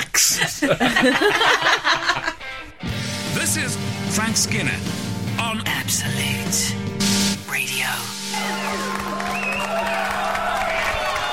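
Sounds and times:
laughter: 0.3 - 2.7
speech: 0.4 - 2.2, 3.6 - 10.0
audience cheering at the end of a song: 8.3 - 11.3
scattered audience whoops: 8.4 - 11.3.

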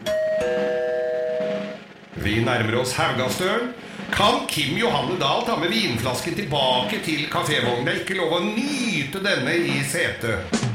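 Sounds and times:
train public address two-note electronic chime: 0.0 - 1.8
speech: 2.2 - 10.6.

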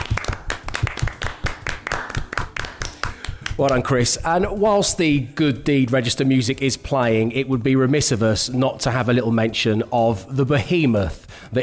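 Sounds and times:
short round of applause: 0.0 - 4.7
speech: 3.6 - 11.6.

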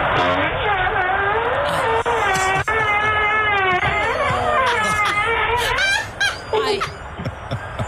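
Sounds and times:
man passing wind caught on a doorbell: 0.1 - 0.9, 1.5 - 5.8
laughter: 1.7 - 7.8.

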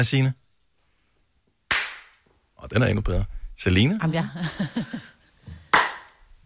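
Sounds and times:
speech: 0.0 - 0.4, 2.6 - 5.1
single hand clap with room reverb: 1.7 - 2.2, 5.7 - 6.2
laughter: 4.2 - 5.2.

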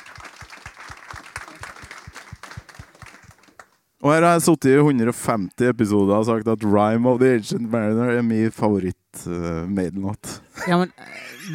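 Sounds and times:
applause: 0.0 - 3.8
speech: 4.0 - 11.5.

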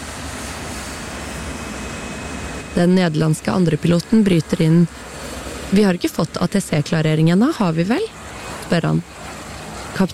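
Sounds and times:
KLM airliner jet engines throttling up and down before takeoff: 0.0 - 10.1
speech: 2.8 - 9.3, 10.0 - 10.1.

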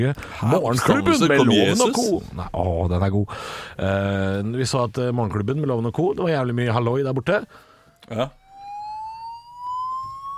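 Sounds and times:
speech: 0.0 - 8.4
fire alarm sound effect: 7.9 - 10.3.

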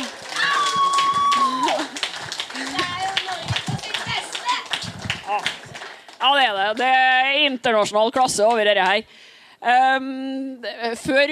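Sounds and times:
audience applause: 0.0 - 6.5
speech: 6.2 - 11.2.

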